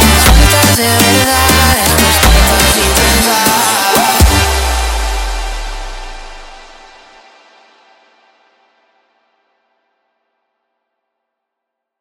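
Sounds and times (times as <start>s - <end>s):
sped up funk music: 0.0s - 6.9s.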